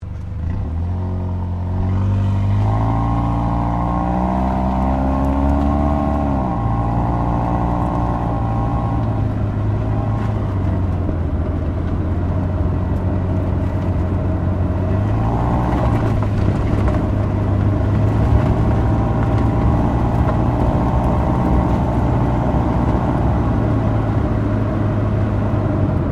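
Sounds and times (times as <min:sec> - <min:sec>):
Toyota Yaris car exhaust driving slowly: 0:00.0 - 0:26.1.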